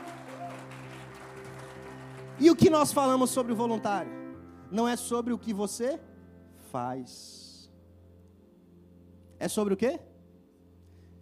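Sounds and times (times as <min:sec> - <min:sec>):
audience clapping: 0:00.0 - 0:03.5
low sustained musical tone: 0:00.0 - 0:11.1
speech: 0:02.4 - 0:06.1, 0:06.7 - 0:07.4, 0:09.4 - 0:10.1.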